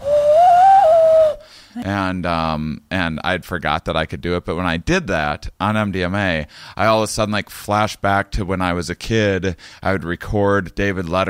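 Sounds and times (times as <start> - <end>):
hand whistle: 0.0 - 1.4
speech: 1.9 - 11.2.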